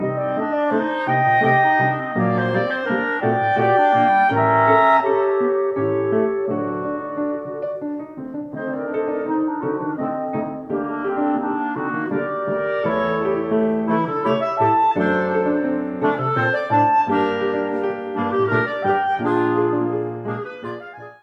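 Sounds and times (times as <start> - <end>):
musical trio: 0.0 - 21.2.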